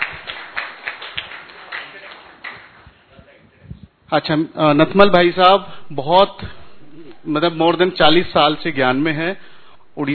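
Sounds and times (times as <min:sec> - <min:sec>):
audience clapping: 0:00.0 - 0:03.0
speech: 0:04.1 - 0:06.6, 0:07.2 - 0:10.1.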